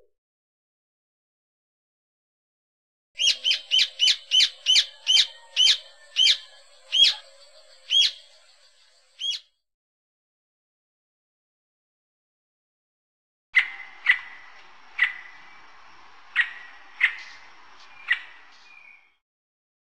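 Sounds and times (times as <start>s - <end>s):
birds in Costa Rica: 3.2s - 9.5s, 13.6s - 19.2s.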